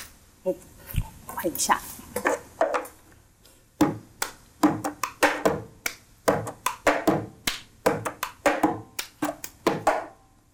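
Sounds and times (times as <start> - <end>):
speech: 0.4 - 2.0
hand claps in a cup-game rhythm: 4.2 - 10.1.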